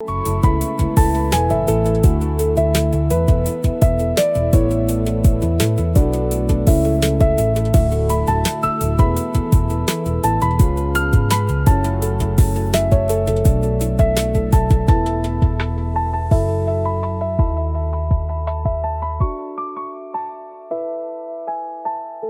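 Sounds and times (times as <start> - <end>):
music loop: 0.0 - 19.6.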